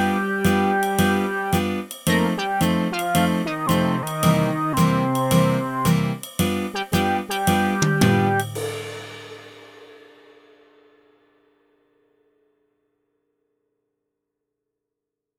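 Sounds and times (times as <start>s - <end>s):
MIDI blues music: 0.0s - 8.6s.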